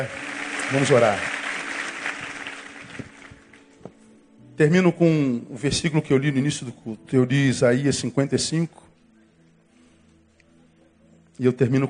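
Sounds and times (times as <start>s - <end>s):
speech: 0.0s - 1.3s, 4.6s - 8.8s, 11.4s - 11.8s
audience applauding: 0.0s - 3.8s.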